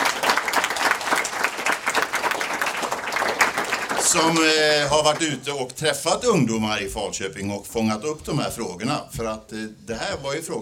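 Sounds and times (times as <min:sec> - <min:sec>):
audience applause: 0:00.0 - 0:05.4
speech: 0:04.1 - 0:10.6.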